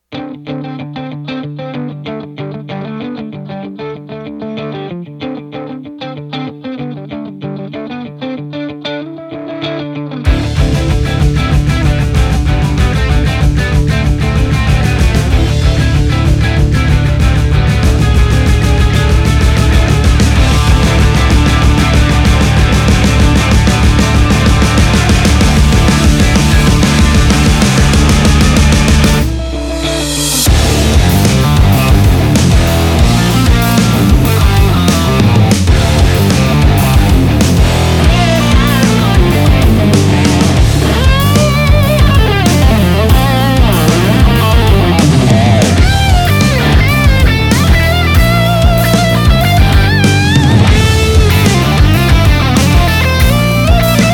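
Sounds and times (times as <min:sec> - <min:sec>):
Binary amp with Binary cab: 0:00.0 - 0:54.1.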